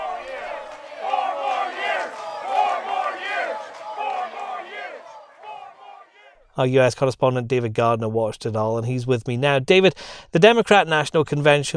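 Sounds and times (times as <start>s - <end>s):
large convention crowd cheering: 0.0s - 6.4s
speech: 6.6s - 11.7s.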